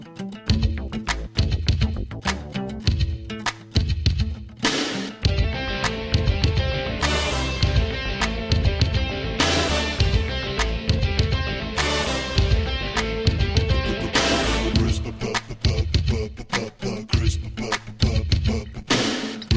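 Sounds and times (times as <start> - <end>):
Indian drum beat: 0.5 - 19.5.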